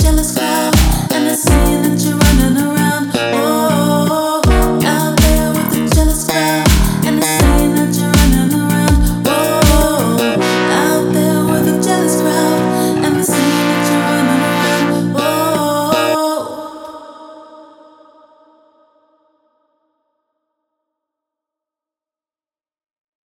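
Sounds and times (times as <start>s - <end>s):
modern soul music: 0.0s - 17.0s.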